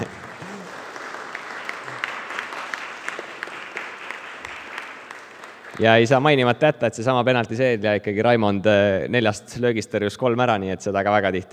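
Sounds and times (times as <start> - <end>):
applause: 0.0 - 6.6
speech: 5.8 - 11.5.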